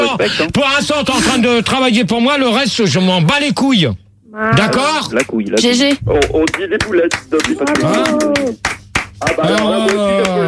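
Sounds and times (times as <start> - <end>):
speech: 0.1 - 10.4
hand clapping: 5.2 - 10.4.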